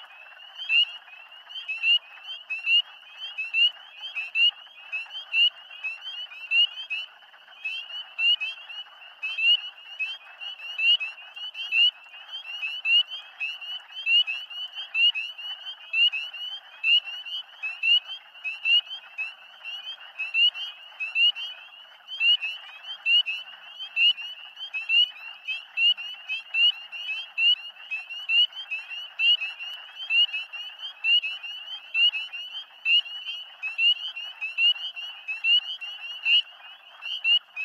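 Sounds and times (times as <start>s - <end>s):
spring peepers calling in a mixed chorus: 0.0s - 37.6s.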